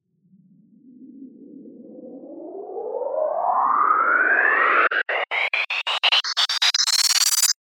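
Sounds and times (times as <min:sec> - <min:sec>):
riser sweep: 0:03.6 - 0:07.6.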